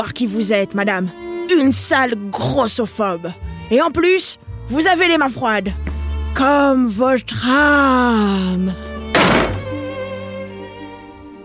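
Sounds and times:
speech: 0.0s - 8.9s
heavy thud on a door: 9.2s - 9.8s.

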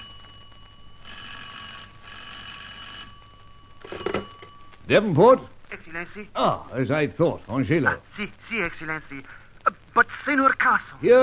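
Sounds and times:
old-fashioned telephone ringing: 0.0s - 5.0s
low steady hum: 0.0s - 10.0s
speech: 4.9s - 9.4s, 10.0s - 11.2s.

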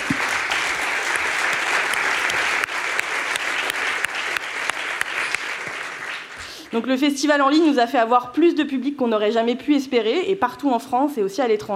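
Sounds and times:
applause: 0.0s - 6.7s
speech: 6.7s - 11.7s.

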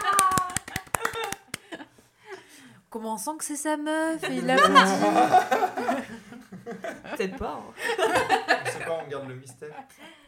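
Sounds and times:
hand clapping: 0.0s - 1.8s
speech: 2.9s - 10.2s
voices chattering: 4.2s - 5.6s
laughter: 4.2s - 10.1s.

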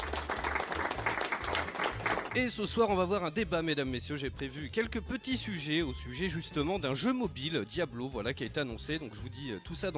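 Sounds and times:
applause sound effect: 0.0s - 2.7s
speech: 2.3s - 9.9s.

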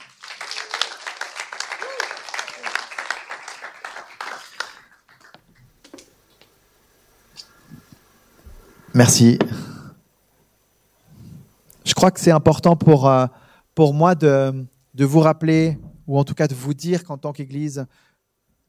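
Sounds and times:
crowd applauding: 0.0s - 5.8s
speech: 9.0s - 9.6s, 12.0s - 18.1s.

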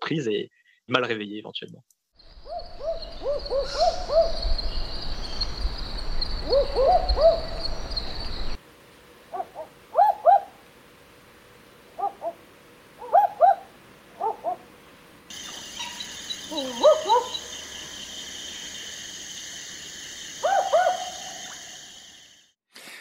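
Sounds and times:
speech: 0.1s - 2.0s, 3.2s - 4.6s, 6.5s - 7.6s
barking owl calls: 2.3s - 4.8s, 6.4s - 7.9s, 9.3s - 10.6s, 12.0s - 12.4s, 13.0s - 14.6s, 15.3s - 17.6s, 20.4s - 22.0s.

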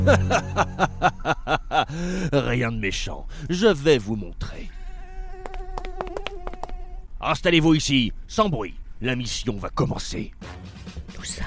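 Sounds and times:
speech: 0.0s - 0.9s, 1.9s - 4.7s, 7.2s - 11.4s
laughter: 0.0s - 2.4s
Aedes caspius mosquito buzzing in flight: 4.7s - 7.1s.

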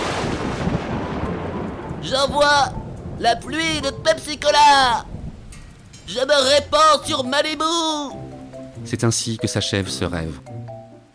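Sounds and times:
thunder sound effect: 0.0s - 6.0s
speech: 2.0s - 5.1s, 6.1s - 8.2s, 8.8s - 10.6s.

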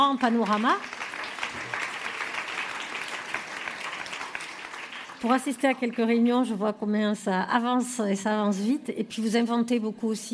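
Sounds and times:
speech: 0.0s - 1.0s, 5.2s - 10.3s
audience applause: 0.0s - 5.6s.

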